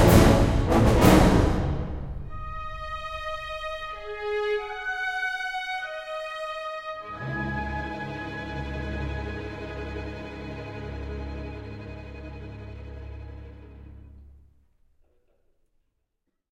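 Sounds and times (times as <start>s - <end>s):
music: 0.0s - 15.5s.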